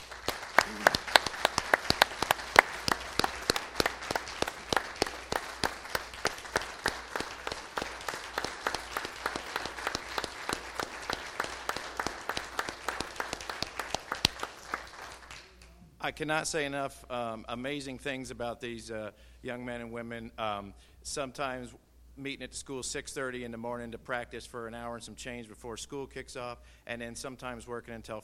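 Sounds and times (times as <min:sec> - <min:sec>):
audience round of applause: 0:00.0 - 0:15.6
speech: 0:16.1 - 0:28.2.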